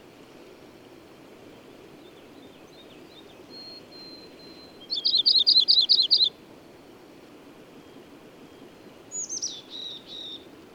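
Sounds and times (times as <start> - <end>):
bird singing: 2.0 - 6.4, 9.1 - 10.5.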